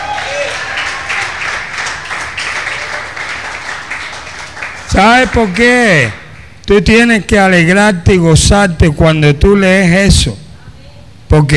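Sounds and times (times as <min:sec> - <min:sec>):
audience shouting: 0:00.0 - 0:02.0
audience applauding: 0:00.0 - 0:06.6
speech: 0:05.0 - 0:10.4, 0:11.3 - 0:11.5.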